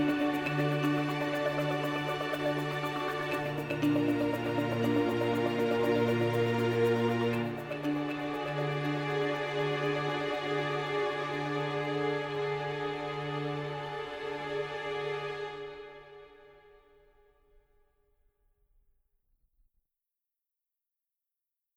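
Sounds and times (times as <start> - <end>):
suspense music: 0.0 - 14.8.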